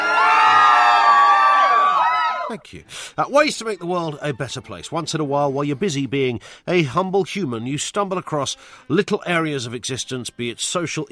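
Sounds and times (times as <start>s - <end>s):
crowd cheering and whooping: 0.0s - 2.6s
speech: 2.5s - 11.1s.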